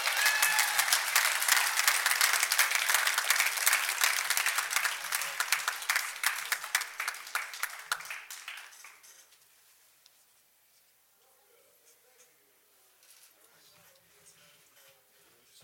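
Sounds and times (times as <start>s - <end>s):
crowd applause for a baseball manager: 0.0s - 9.1s.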